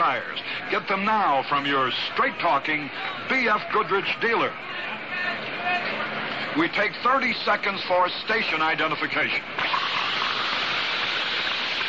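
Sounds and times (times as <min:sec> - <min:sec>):
speech: 0:00.0 - 0:05.6, 0:06.5 - 0:10.2
carbonated mineral water fizzing: 0:09.6 - 0:11.8.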